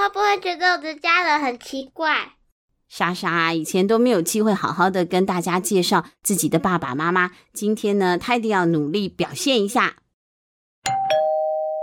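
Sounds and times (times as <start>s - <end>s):
speech: 0.1s - 10.0s
doorbell ding-dong: 10.9s - 11.8s.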